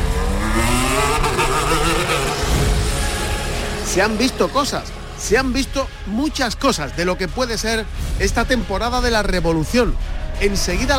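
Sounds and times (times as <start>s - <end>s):
Formula 1 cars in 2022 preseason testing at the Montmeló circuit: 0.0s - 7.9s
speech: 4.0s - 10.9s.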